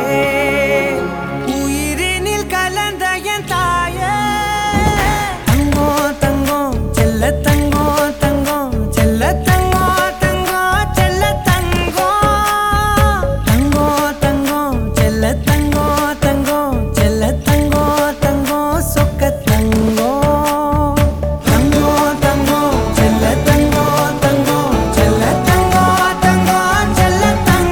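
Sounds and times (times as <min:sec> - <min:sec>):
male vocals in Tamil: 0:00.0 - 0:27.6.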